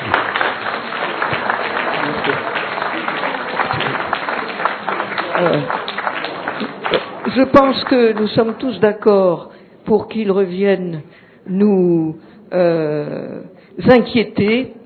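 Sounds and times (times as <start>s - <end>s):
faint murmuring voices: 0.0s - 7.2s
audience clapping for a speaker: 0.0s - 8.9s
speech: 5.4s - 5.8s, 7.4s - 14.8s.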